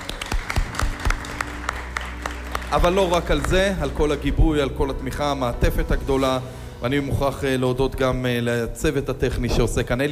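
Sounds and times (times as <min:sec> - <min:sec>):
sparse hand clapping in a radio studio: 0:00.0 - 0:03.6
speech: 0:02.7 - 0:10.1.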